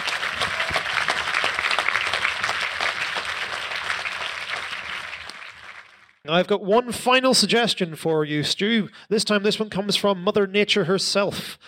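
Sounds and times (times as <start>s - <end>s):
audience applause: 0.0s - 6.2s
speech: 6.3s - 11.6s.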